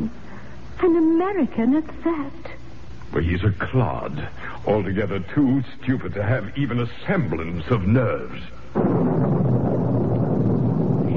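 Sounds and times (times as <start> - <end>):
speech: 0.8 - 2.5, 3.1 - 9.5
thunder during a thunderstorm: 8.7 - 11.1.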